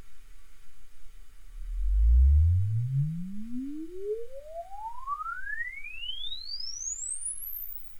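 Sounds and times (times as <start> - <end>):
Alesis uncal sweep: 1.5 - 5.8.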